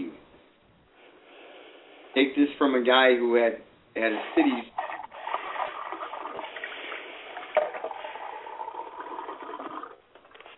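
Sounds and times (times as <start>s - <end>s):
speech: 2.2s - 4.8s
water rinsing out a cup: 4.1s - 10.0s.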